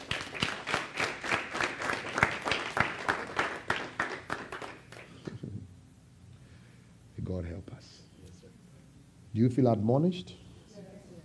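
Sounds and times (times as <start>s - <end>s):
audience clapping hands: 0.0s - 5.4s
speech: 9.4s - 10.4s.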